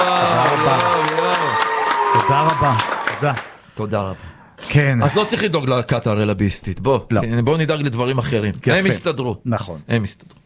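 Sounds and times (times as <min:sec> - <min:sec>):
audience clapping: 0:00.0 - 0:03.6
speech: 0:02.3 - 0:10.4.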